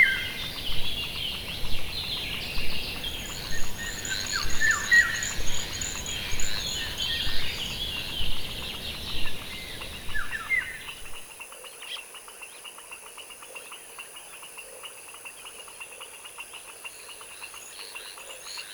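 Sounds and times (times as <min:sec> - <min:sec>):
swamp ambience: 0:00.0 - 0:11.3.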